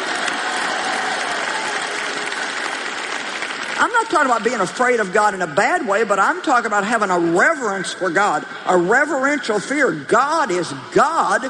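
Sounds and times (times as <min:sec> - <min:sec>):
audience applause: 0:00.0 - 0:04.8
speech: 0:03.8 - 0:11.4.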